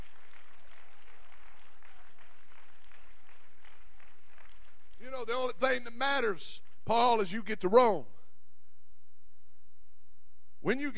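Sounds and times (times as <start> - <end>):
audience clapping hands in praise: 0.0 - 7.2
speech: 5.2 - 8.1, 10.6 - 10.9.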